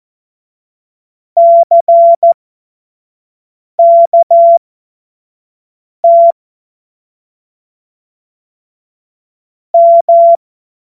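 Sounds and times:
morse code CW: 1.4s - 2.4s, 3.8s - 4.6s, 9.8s - 10.4s.

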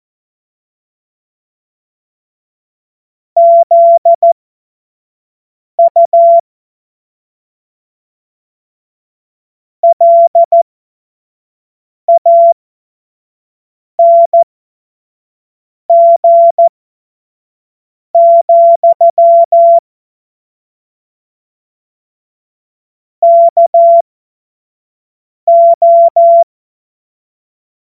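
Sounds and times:
Morse code course tones: 3.4s - 4.3s, 5.8s - 6.4s, 9.9s - 10.7s, 14.0s - 14.5s, 15.9s - 16.7s, 18.2s - 19.8s, 23.3s - 24.1s, 25.5s - 26.5s.

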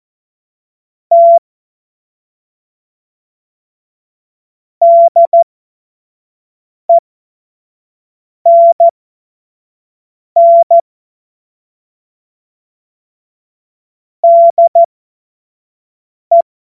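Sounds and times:
Morse code tones: 1.1s - 1.4s, 4.8s - 5.4s, 8.5s - 8.9s, 10.4s - 10.8s, 14.2s - 14.9s.

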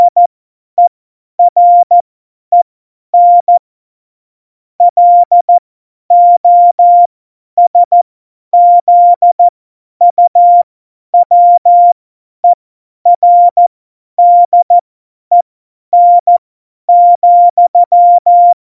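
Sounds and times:
CW Morse code at tempo 70: 0.0s - 0.2s, 0.8s - 2.6s, 3.2s - 3.6s, 4.8s - 8.0s, 8.6s - 12.6s, 13.2s - 15.4s, 16.0s - 18.6s.

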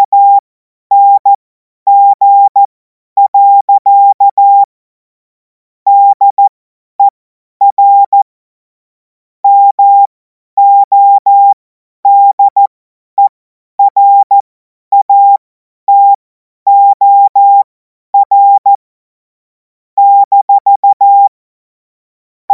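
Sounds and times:
CW Morse code beeps: 0.0s - 4.7s, 5.9s - 8.3s, 9.5s - 18.8s, 20.0s - 21.4s.

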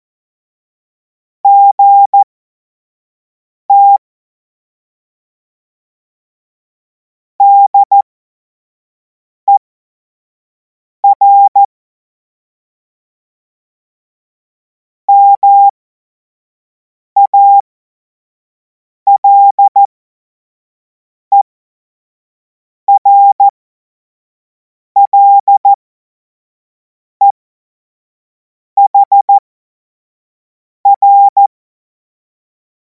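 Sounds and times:
Morse code course tones: 1.5s - 2.2s, 3.7s - 4.0s, 7.4s - 8.0s, 11.0s - 11.7s, 15.1s - 15.7s, 17.3s - 17.6s, 19.1s - 19.9s, 22.9s - 23.5s, 25.0s - 25.7s, 28.8s - 29.3s, 30.9s - 31.5s.

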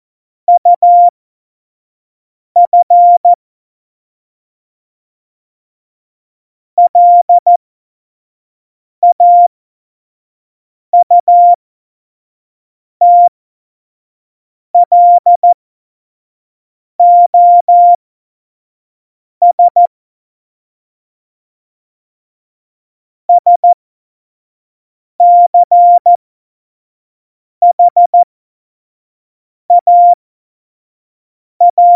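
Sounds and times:
morse code beeps: 0.5s - 1.1s, 2.6s - 3.4s, 6.9s - 7.6s, 9.0s - 9.5s, 11.0s - 11.6s, 13.0s - 13.3s, 14.8s - 15.6s, 17.0s - 18.0s, 19.4s - 19.9s, 23.3s - 23.8s, 25.2s - 26.2s, 27.6s - 28.2s, 29.7s - 30.2s, 31.6s - 31.9s.

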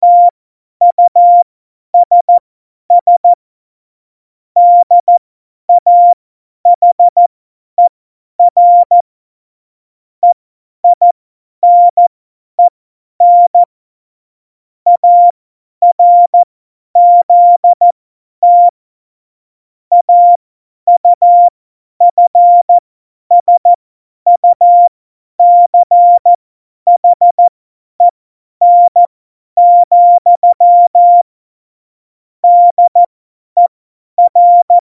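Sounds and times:
CW Morse code beeps: 0.0s - 1.4s, 2.0s - 2.4s, 3.0s - 3.4s, 4.6s - 5.2s, 5.8s - 6.2s, 6.8s - 7.2s, 7.8s - 9.0s, 10.2s - 13.7s, 14.9s - 17.8s, 18.4s - 18.7s, 19.9s - 31.3s, 32.4s - 34.8s.

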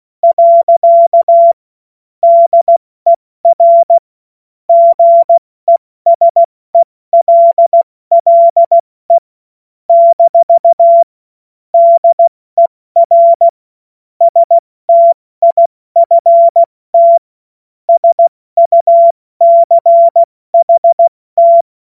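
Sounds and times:
CW Morse code beeps: 0.2s - 1.6s, 2.2s - 2.8s, 3.4s - 4.0s, 4.7s - 9.2s, 9.9s - 11.1s, 11.8s - 13.6s, 14.2s - 17.2s, 17.9s - 21.7s.

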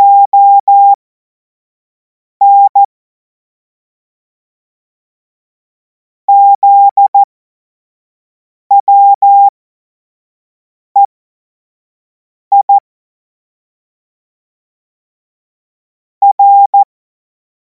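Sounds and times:
CW Morse code beeps: 0.0s - 1.0s, 2.4s - 2.9s, 6.3s - 7.3s, 8.7s - 9.5s, 12.5s - 12.7s, 16.2s - 16.9s.

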